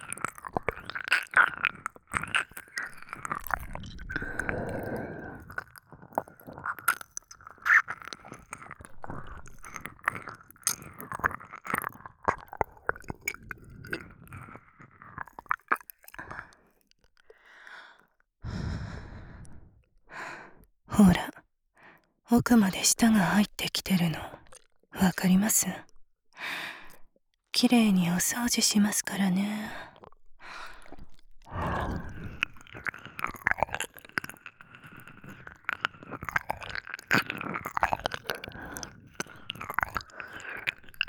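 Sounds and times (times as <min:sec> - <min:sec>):
ear licking: 0:00.0 - 0:14.0, 0:30.0 - 0:41.0
nurse speaking in a low cool voice: 0:20.9 - 0:21.5, 0:22.3 - 0:26.0, 0:27.5 - 0:30.0.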